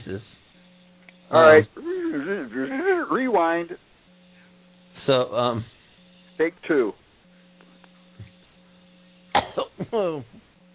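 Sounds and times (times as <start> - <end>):
speech: 0.1 - 0.4, 1.3 - 3.9, 5.0 - 5.8, 6.4 - 7.0, 9.6 - 10.4
throat clearing: 9.4 - 10.2.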